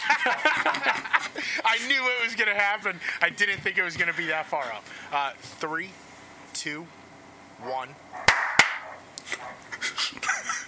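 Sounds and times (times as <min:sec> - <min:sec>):
laughter: 0:00.0 - 0:01.9, 0:03.2 - 0:04.9, 0:09.2 - 0:10.6
speech: 0:00.1 - 0:06.0, 0:06.6 - 0:07.0, 0:07.6 - 0:08.4
hand clap for audio sync: 0:08.3 - 0:08.8.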